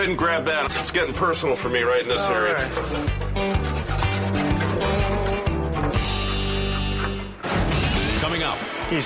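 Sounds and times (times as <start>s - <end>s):
speech: 0.0s - 5.0s, 8.2s - 9.0s
paint being scraped: 2.2s - 9.0s.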